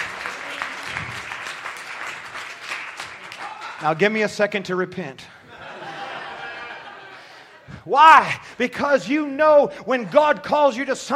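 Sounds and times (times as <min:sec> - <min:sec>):
audience hand clapping: 0:00.0 - 0:04.3
speech: 0:03.8 - 0:05.4, 0:07.8 - 0:11.1
laughter: 0:05.4 - 0:07.9.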